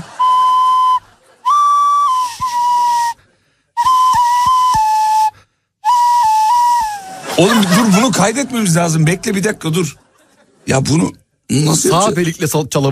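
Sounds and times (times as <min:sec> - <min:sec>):
laughter: 0:00.0 - 0:01.7, 0:06.9 - 0:12.3
whistled tune played through the nose: 0:00.0 - 0:07.2
speech: 0:07.4 - 0:10.1, 0:10.7 - 0:12.8.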